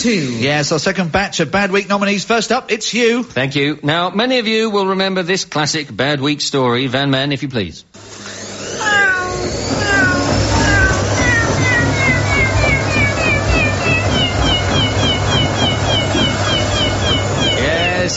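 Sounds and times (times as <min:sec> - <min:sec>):
speech: 0:00.0 - 0:08.2
washing machine spin cycle humming: 0:08.0 - 0:18.1
tabby cat meowing in a washing machine spin cycle: 0:08.7 - 0:16.6.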